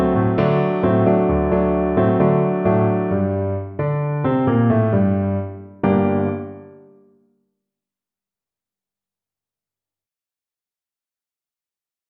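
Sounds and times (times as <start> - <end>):
piano: 0.0 - 7.1.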